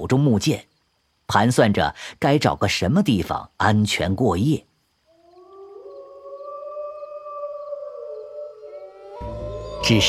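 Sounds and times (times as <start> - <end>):
speech: 0.0 - 0.7, 1.3 - 4.7, 9.8 - 10.0
wild beasts howling in a mountain forest at nightfall: 5.1 - 10.0.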